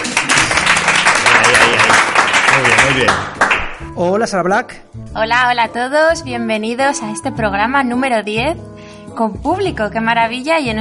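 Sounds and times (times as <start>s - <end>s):
live audience applause: 0.0s - 3.9s
speech: 4.0s - 10.8s.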